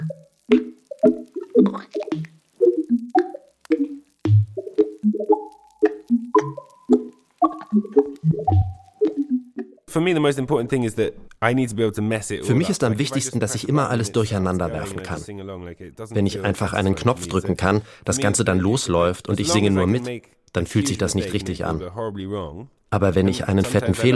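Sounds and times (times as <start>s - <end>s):
dense buzzing crackle: 0.0s - 9.0s
crabs making popcorn-like pops and plops: 0.0s - 9.8s
speech: 0.5s - 1.9s, 10.0s - 24.1s.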